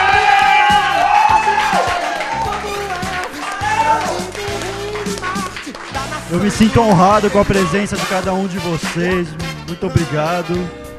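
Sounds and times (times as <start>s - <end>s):
whoops and shouting voices: 0.0s - 4.6s
crowd applauding: 0.0s - 9.1s
speech: 6.3s - 10.8s.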